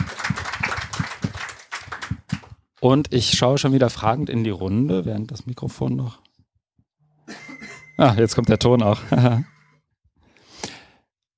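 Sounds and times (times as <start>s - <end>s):
audience applause: 0.0s - 2.3s
speech: 2.8s - 6.2s, 8.0s - 9.6s.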